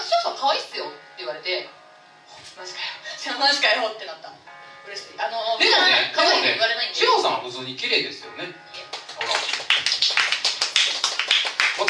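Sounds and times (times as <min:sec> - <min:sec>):
speech: 0:03.4 - 0:09.3
listeners clapping: 0:08.8 - 0:11.8.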